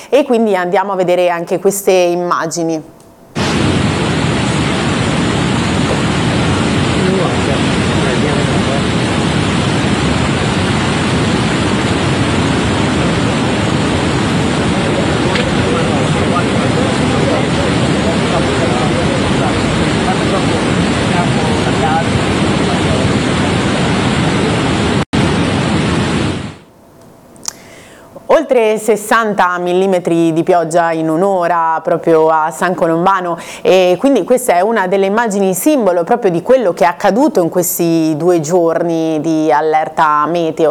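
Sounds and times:
speech: 0.1s - 3.0s, 28.5s - 40.6s
flooded mountain torrent rushing: 3.4s - 26.6s.

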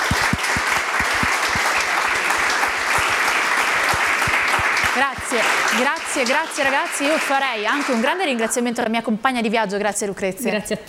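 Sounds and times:
audience applause: 0.0s - 8.4s
speech: 5.0s - 10.8s.

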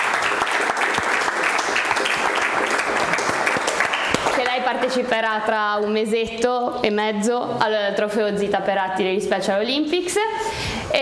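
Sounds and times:
audience applause: 0.0s - 4.5s
speech: 4.9s - 11.0s.

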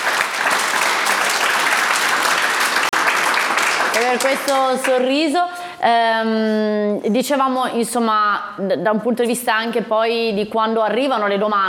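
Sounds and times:
crowd clapping: 0.0s - 5.1s
speech: 4.0s - 11.6s.

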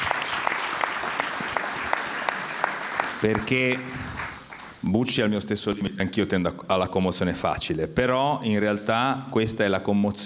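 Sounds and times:
audience applause: 0.0s - 5.3s
speech: 3.2s - 4.1s, 4.8s - 10.2s.

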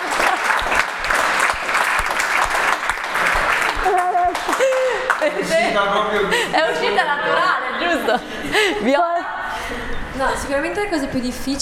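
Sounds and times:
audience applause: 0.0s - 5.6s
laughter: 0.0s - 10.1s
speech: 5.2s - 11.6s.

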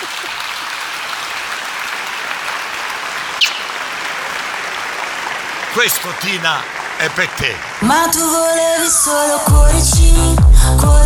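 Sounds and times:
audience applause: 0.0s - 8.5s
speech: 5.8s - 11.0s.

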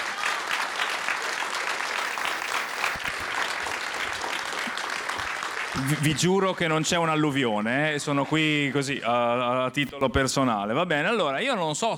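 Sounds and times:
crowd applauding: 0.0s - 9.1s
speech: 5.8s - 11.9s.

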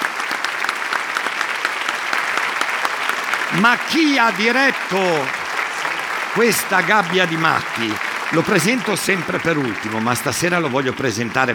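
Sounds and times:
audience applauding young performers at a live show: 0.0s - 11.5s
laughter: 3.4s - 11.5s
speech: 3.5s - 5.4s, 6.3s - 11.5s.

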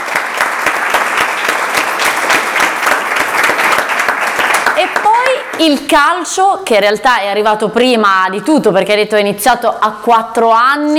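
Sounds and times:
audience applause: 0.0s - 5.6s
speech: 4.8s - 10.9s.

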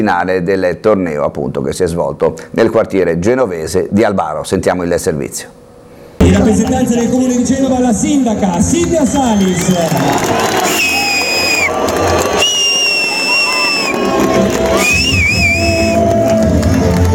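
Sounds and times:
speech: 0.0s - 5.6s, 6.3s - 10.8s
crowd whistling in disapproval at award ceremony: 8.6s - 17.0s.

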